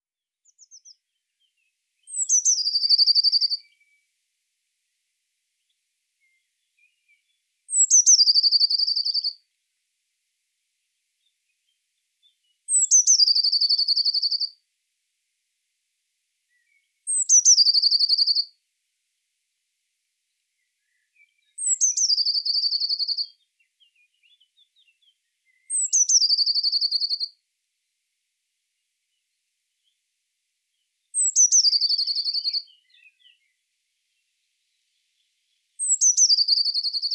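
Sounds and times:
Cyanistes caeruleus: 0:00.4 - 0:04.0, 0:05.6 - 0:09.4, 0:12.2 - 0:14.6, 0:16.5 - 0:18.5, 0:20.8 - 0:27.3, 0:30.7 - 0:33.6, 0:34.2 - 0:37.1.

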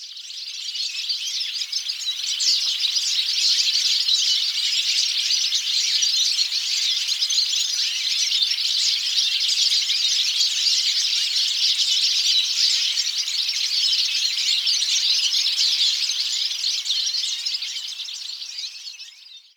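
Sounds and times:
European goldfinch Carduelis carduelis song: 0:00.0 - 0:19.5.

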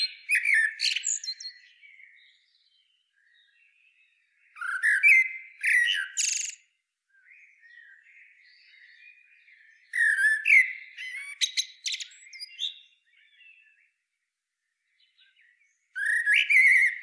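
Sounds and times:
common blackbird Turdus merula singing: 0:00.0 - 0:14.0, 0:14.9 - 0:17.0.

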